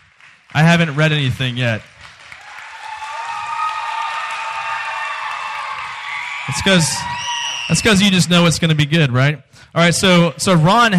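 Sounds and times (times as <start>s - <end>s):
audience clapping: 0.0s - 8.0s
speech: 0.5s - 1.9s, 6.6s - 10.9s.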